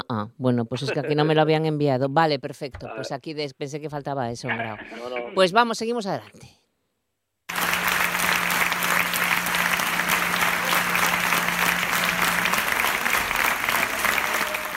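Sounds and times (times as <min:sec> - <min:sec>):
speech: 0:00.1 - 0:06.6
applause: 0:07.5 - 0:14.7
laughter: 0:09.6 - 0:14.7.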